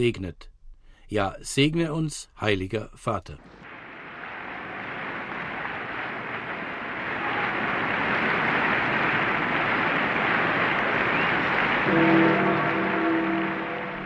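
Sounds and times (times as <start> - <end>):
speech: 0.0 - 0.5, 1.1 - 3.6
large crowd applauding in a square: 3.6 - 14.0
sustained sung or chanted tones: 11.9 - 14.0.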